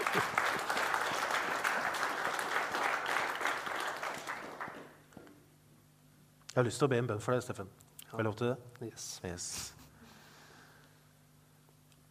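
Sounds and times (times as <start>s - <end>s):
audience applause: 0.0s - 5.1s
speech: 6.6s - 9.8s.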